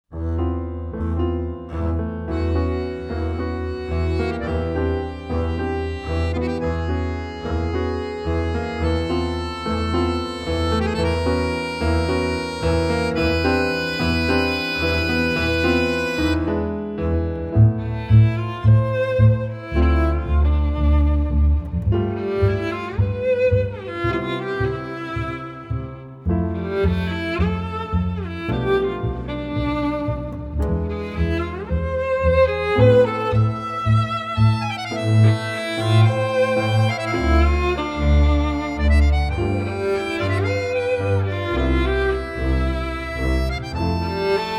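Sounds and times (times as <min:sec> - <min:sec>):
tango music extract: 0:00.0 - 0:44.5.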